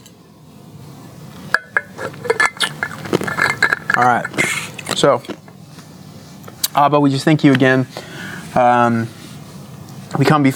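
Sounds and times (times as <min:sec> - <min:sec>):
sipping water from a glass: 0:01.8 - 0:05.0
speech: 0:04.0 - 0:04.4, 0:05.0 - 0:05.4, 0:06.8 - 0:09.2, 0:10.1 - 0:10.5.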